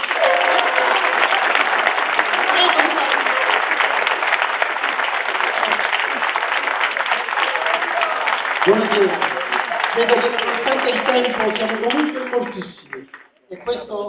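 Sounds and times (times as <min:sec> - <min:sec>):
crowd applause: 0:00.0 - 0:13.8.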